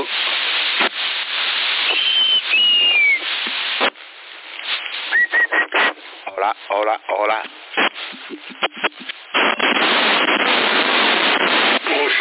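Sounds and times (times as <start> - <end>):
steady CB radio static and hiss: 0.0 - 12.1
thin high whistle over a CB radio channel in Sassari: 1.8 - 3.3, 5.1 - 5.7
speech: 6.5 - 7.6.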